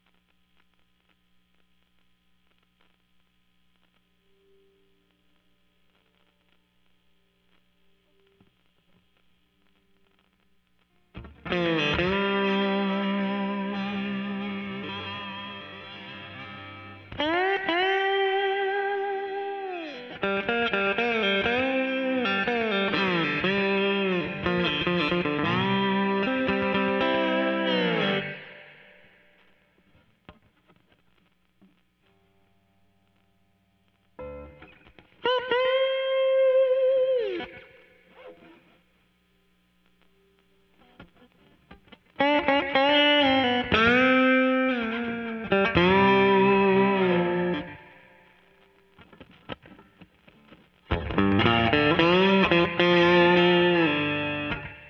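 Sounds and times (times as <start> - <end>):
slide guitar: 11.2 - 29.2, 34.2 - 38.8, 40.8 - 54.8.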